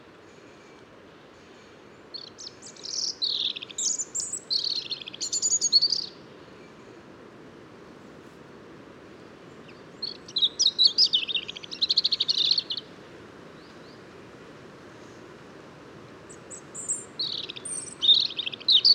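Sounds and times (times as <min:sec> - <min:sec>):
faint hiss: 0:00.0 - 0:18.9
European robin singing: 0:02.1 - 0:06.3, 0:09.5 - 0:12.9, 0:16.3 - 0:18.9.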